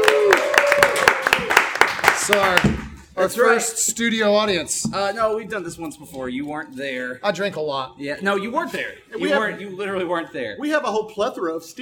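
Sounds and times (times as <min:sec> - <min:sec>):
person whooping: 0:00.0 - 0:01.5
small audience clapping: 0:00.0 - 0:03.1
speech: 0:02.3 - 0:11.8.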